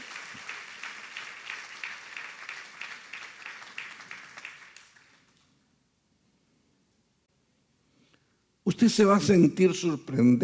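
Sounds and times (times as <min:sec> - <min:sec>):
church congregation applauding: 0:00.0 - 0:05.6
speech: 0:08.8 - 0:10.4.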